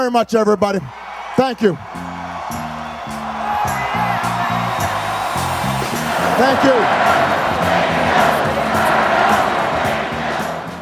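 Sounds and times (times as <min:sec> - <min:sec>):
speech: 0:00.0 - 0:02.0, 0:06.4 - 0:07.2
campaign rally crowd chanting: 0:02.0 - 0:10.7
roar of massed voices: 0:06.0 - 0:10.7.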